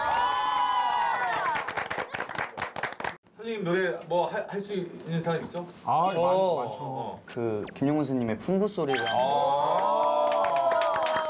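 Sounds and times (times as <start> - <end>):
audience applause and cheering: 0.0 - 3.1, 9.6 - 11.2
speech: 3.5 - 9.8.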